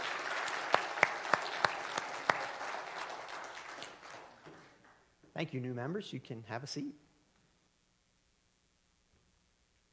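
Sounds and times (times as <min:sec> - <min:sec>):
audience applause welcoming new church members: 0:00.0 - 0:05.0
sharp evenly spaced claps: 0:00.0 - 0:05.0
speech: 0:05.4 - 0:07.1.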